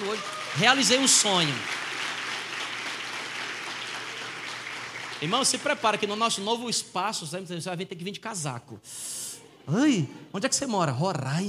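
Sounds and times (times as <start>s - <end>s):
audience applause: 0.0s - 6.6s
speech: 0.2s - 1.8s, 5.2s - 11.4s.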